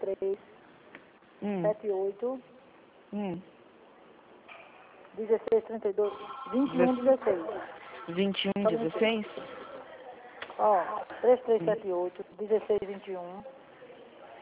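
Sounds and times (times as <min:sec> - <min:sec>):
speech: 0:00.1 - 0:00.5, 0:01.4 - 0:02.5, 0:03.1 - 0:03.5, 0:05.2 - 0:09.6, 0:10.6 - 0:13.6
telephone ringing: 0:06.0 - 0:09.8.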